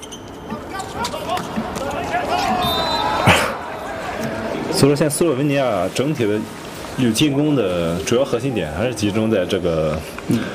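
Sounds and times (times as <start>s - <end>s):
arena noise: 0.0s - 10.5s
volleyball served by the setter: 1.1s - 4.4s
speech: 4.8s - 10.5s.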